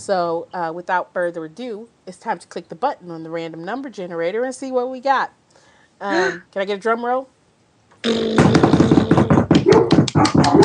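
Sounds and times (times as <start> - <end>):
speech: 0.0 - 5.4, 6.0 - 7.4, 8.0 - 8.9, 10.2 - 10.6
dog barking: 9.6 - 10.6.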